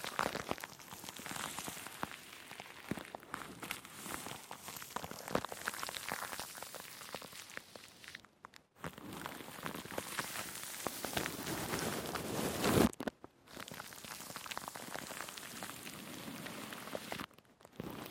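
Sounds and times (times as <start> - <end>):
plastic wrap crinkling and rustling: 0.0 - 18.0.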